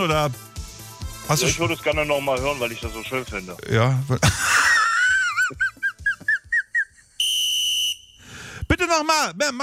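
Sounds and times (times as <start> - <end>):
speech: 0.0 - 0.5, 1.3 - 4.6, 9.0 - 9.6
laughter: 3.8 - 7.1
referee's whistle blowing for the kick-off: 7.2 - 8.6.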